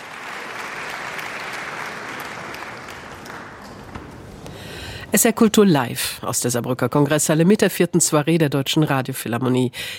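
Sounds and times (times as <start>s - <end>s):
concert hall audience applause in the Saarbrücker Kongresshalle: 0.0s - 4.4s
speech: 5.1s - 9.9s.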